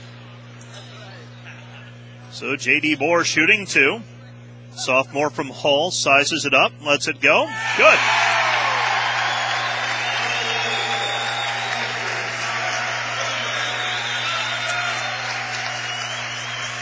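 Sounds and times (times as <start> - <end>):
speech: 2.3 - 4.1, 4.8 - 8.4
basketball crowd applauding a made free throw: 7.7 - 16.8.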